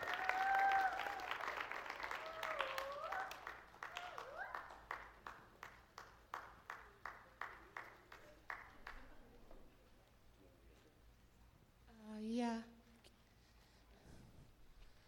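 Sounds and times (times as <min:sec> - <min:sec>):
whoops and cheers: 0:00.0 - 0:04.8
audience applause: 0:00.0 - 0:09.1.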